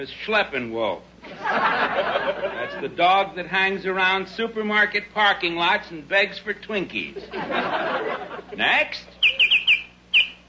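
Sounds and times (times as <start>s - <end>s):
speech: 0.0s - 9.2s
laughter: 1.2s - 3.0s, 7.1s - 9.2s
Baltimore oriole call: 9.2s - 10.4s.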